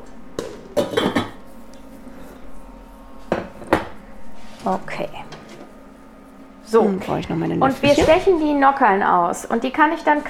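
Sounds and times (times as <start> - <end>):
metal pot lid clanking: 0.4 - 1.4
speech: 4.7 - 5.3, 6.7 - 10.2.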